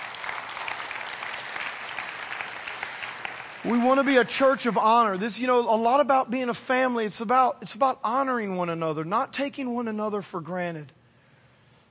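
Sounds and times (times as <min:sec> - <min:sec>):
audience clapping hands: 0:00.0 - 0:04.8
speech: 0:03.6 - 0:11.0.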